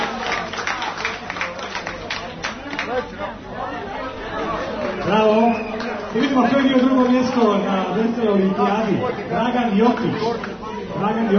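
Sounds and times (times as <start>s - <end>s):
audience applauding a third-place winner at a games competition: 0.0s - 3.1s, 4.4s - 7.5s
crowd chatter: 0.0s - 11.3s
speech: 2.9s - 3.4s, 6.2s - 11.3s.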